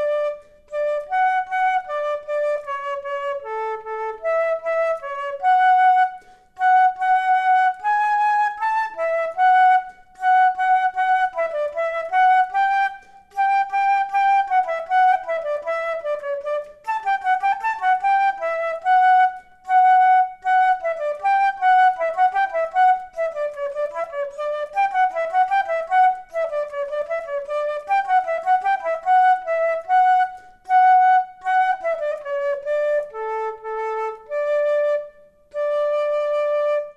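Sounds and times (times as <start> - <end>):
flute duet: 0.0 - 36.9.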